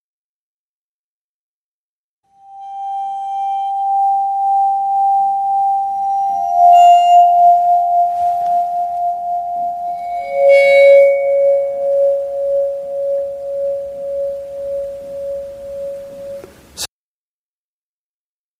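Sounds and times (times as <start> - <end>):
bowed vibraphone with motor running: 2.4 - 16.5.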